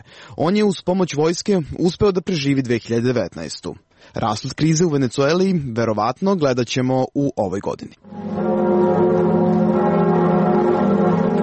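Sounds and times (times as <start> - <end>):
speech: 0.3 - 8.4
Notre Dame cathedral bells in Paris ringing: 8.1 - 11.4.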